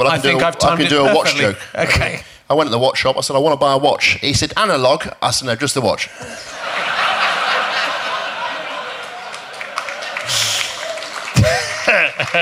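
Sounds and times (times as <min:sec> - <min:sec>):
speech: 0:00.0 - 0:06.6, 0:12.2 - 0:12.4
audience laughing: 0:06.2 - 0:12.4
audience clapping in theatre: 0:07.4 - 0:12.4.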